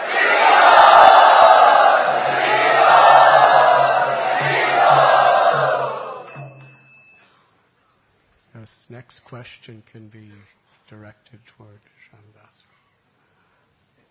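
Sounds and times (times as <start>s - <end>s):
audience loudly cheering to welcome a guest: 0.0s - 6.4s
speech: 9.0s - 12.7s.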